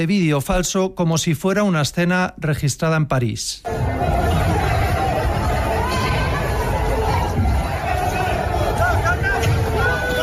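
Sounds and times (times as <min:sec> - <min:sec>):
speech: 0:00.0 - 0:04.1
riot crowd noise: 0:03.6 - 0:10.2.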